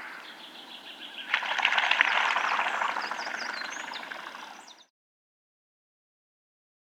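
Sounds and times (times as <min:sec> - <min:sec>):
tufted duck: 0:01.3 - 0:04.6.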